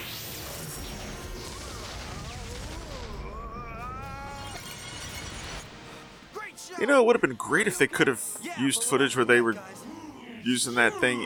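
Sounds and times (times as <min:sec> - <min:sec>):
Quadro Blaster multi-attack rifle sci-fi blaster effect firing: 0:00.0 - 0:05.6
speech: 0:06.8 - 0:11.2.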